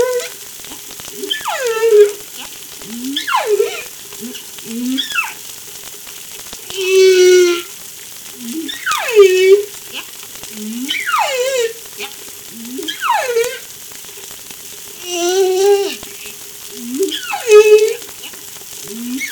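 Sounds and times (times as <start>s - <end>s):
humpback whale song off La Réunion: 0.0s - 0.4s, 1.2s - 5.4s, 6.7s - 7.8s, 8.4s - 9.8s, 10.5s - 13.7s, 16.8s - 18.1s, 18.8s - 19.3s.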